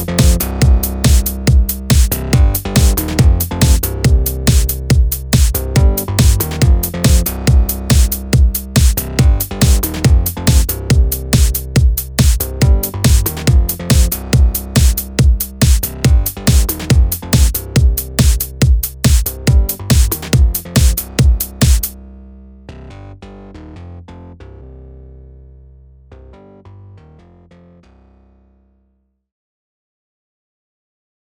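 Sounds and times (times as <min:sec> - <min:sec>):
electro trance music: 0:00.0 - 0:22.0.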